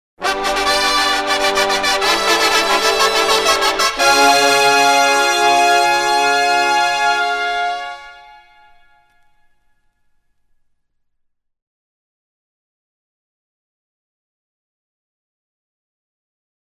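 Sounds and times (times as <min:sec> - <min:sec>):
fanfare: 0:00.2 - 0:09.5.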